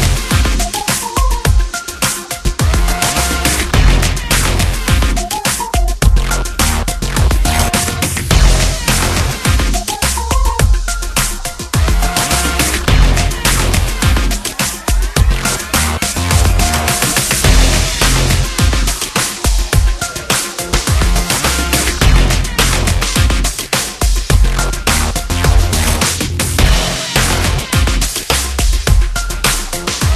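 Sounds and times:
train background music: 0:00.0 - 0:30.1.

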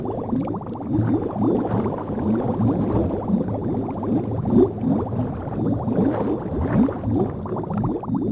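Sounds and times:
swimming in a marsh: 0:00.0 - 0:08.3.

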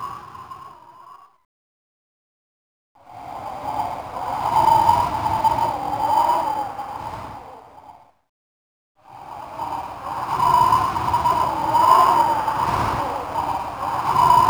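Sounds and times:
wind: 0:03.0 - 0:08.3, 0:09.0 - 0:14.4.

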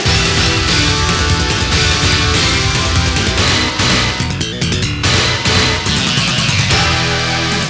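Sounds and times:
game over jingle: 0:00.1 - 0:07.5.

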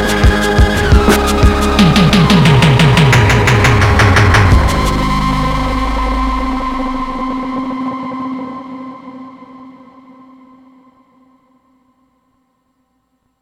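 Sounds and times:
instrumental music: 0:00.0 - 0:08.4.

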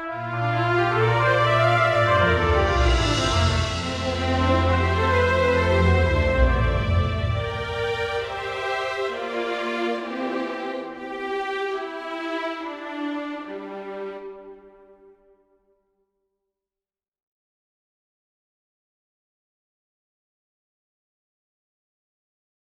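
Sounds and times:
world music: 0:00.2 - 0:14.4.

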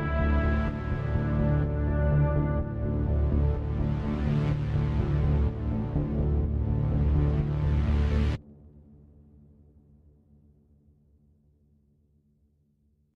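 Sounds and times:
raid ambient game music: 0:00.0 - 0:09.0.

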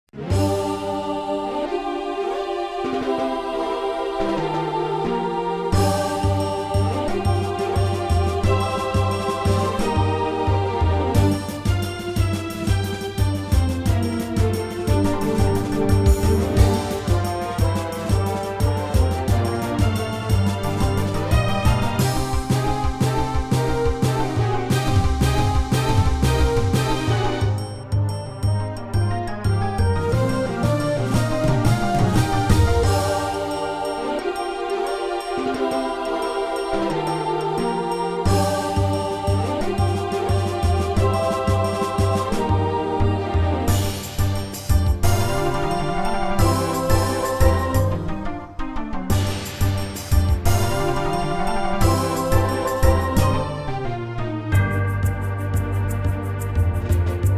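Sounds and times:
fight music: 0:00.1 - 0:57.3.

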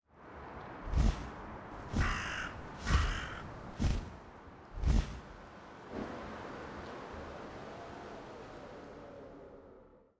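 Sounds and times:
bird flying: 0:00.8 - 0:05.5.

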